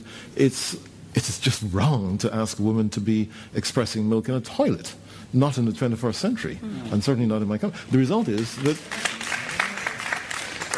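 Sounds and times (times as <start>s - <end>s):
speech: 0.4s - 9.2s
audience applause: 8.3s - 10.7s.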